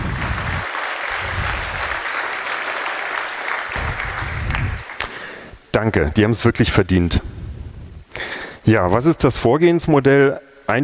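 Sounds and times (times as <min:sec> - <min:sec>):
audience applause: 0:00.0 - 0:05.4
speech: 0:05.8 - 0:07.4, 0:08.7 - 0:10.8.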